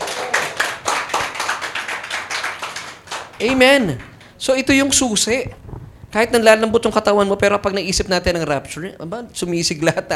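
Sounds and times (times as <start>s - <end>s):
audience clapping hands: 0.0s - 4.4s
speech: 3.4s - 10.1s.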